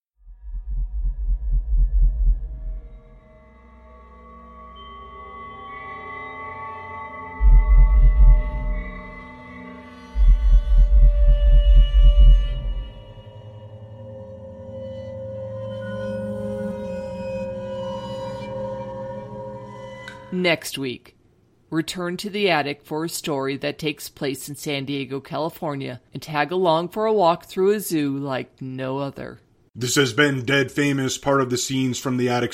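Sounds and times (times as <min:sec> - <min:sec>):
slow heartbeat thumps: 0:00.2 - 0:03.2, 0:07.4 - 0:09.2, 0:10.1 - 0:13.2
speech: 0:20.4 - 0:32.5.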